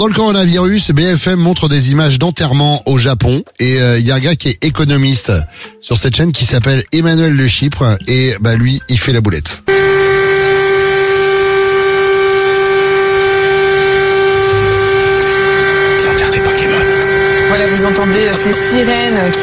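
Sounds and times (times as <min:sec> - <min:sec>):
speech: 0:00.0 - 0:09.8, 0:17.8 - 0:19.4
siren: 0:09.7 - 0:19.4.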